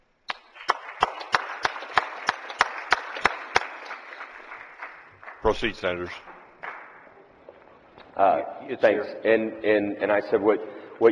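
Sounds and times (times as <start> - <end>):
applause in a state Senate chamber welcoming guests: 0.3 - 8.2
speech: 5.4 - 6.3, 8.2 - 11.1.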